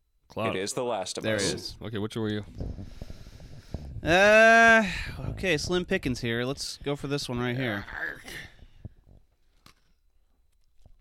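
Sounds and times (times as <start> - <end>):
speech: 0.4 - 3.0, 4.0 - 8.5
person eating an Oreo cookie, crisp bites and crunchy chewing: 9.0 - 10.9.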